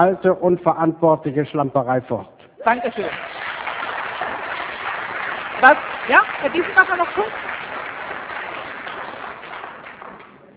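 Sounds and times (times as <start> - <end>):
speech: 0.0 - 3.5, 5.6 - 7.6
audience clapping: 2.6 - 10.5.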